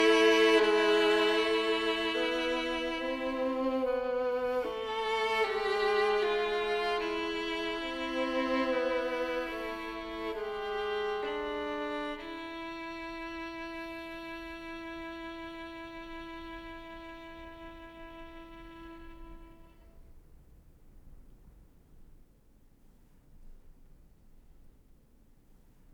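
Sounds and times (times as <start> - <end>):
two violins playing a duo: 0.0 - 19.8.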